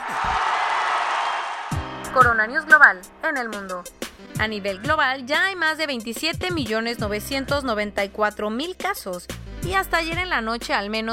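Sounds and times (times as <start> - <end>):
crowd applause and cheering: 0.0 - 3.0
speech: 2.1 - 11.1.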